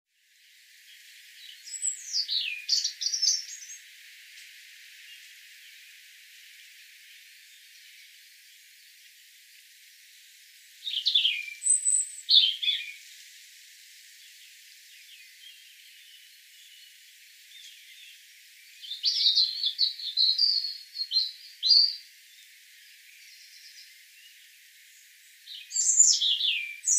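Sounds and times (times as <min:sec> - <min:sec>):
European robin singing: 0:00.9 - 0:06.0, 0:10.8 - 0:13.2, 0:14.1 - 0:26.9.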